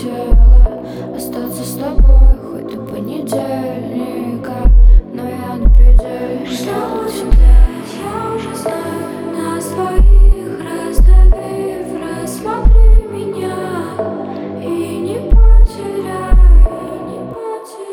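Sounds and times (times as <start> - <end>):
low bass: 0.3 - 0.7, 2.0 - 2.4, 4.6 - 5.0, 5.6 - 6.0, 7.3 - 7.7, 10.0 - 10.4, 11.0 - 11.4, 12.6 - 13.0, 15.3 - 15.7, 16.3 - 16.7.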